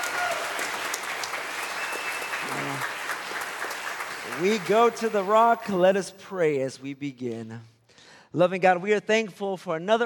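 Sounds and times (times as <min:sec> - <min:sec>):
audience applause: 0:00.0 - 0:06.0
speech: 0:04.4 - 0:07.7, 0:08.3 - 0:10.0.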